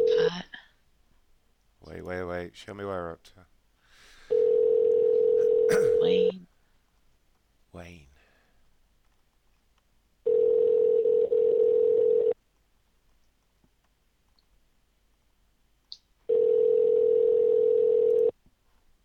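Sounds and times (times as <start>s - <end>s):
speech: 1.9s - 3.5s, 5.7s - 6.5s, 7.7s - 8.1s
telephone ringing with electronic ring tones: 4.3s - 6.3s, 10.3s - 12.4s, 16.3s - 18.3s.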